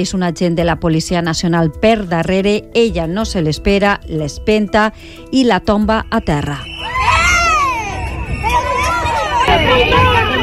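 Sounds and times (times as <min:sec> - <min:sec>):
speech: 0:00.0 - 0:06.7
colleagues shouting and crying out during police assault: 0:06.7 - 0:10.4.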